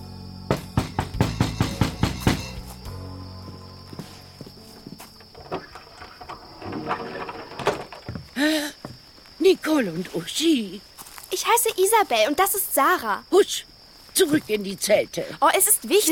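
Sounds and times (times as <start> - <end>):
knocking on a wooden hut door: 0.5 - 2.6
rustling and shuffling: 3.5 - 12.8, 13.8 - 16.0
speech: 9.6 - 16.0.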